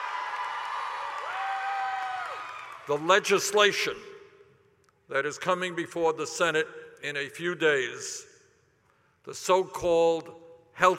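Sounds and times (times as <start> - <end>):
enthusiastic audience cheering and applauding as Bernie Sanders comes on stage: 0.0 - 3.2
speech: 2.9 - 4.1, 5.1 - 8.3, 9.2 - 10.9.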